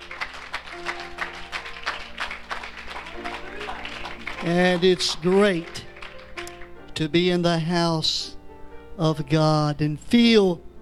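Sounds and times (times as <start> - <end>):
church congregation applause welcoming guests: 0.0 - 6.9
speech: 4.4 - 5.8, 7.0 - 8.4, 9.0 - 10.7.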